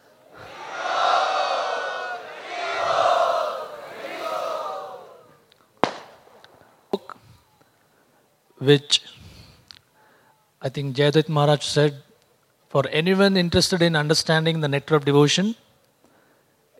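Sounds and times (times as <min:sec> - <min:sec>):
crowd loudly welcoming a visiting swami at a devotional gathering: 0:00.2 - 0:05.5
sharp cracks: 0:05.8 - 0:06.7
speech: 0:08.6 - 0:09.0, 0:10.6 - 0:12.1, 0:12.7 - 0:15.6.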